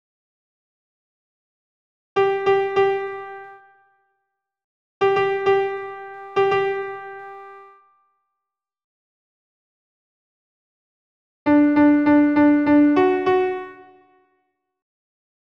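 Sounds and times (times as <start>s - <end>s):
solo piano tango: 2.2s - 3.6s, 5.0s - 7.8s, 11.5s - 14.0s.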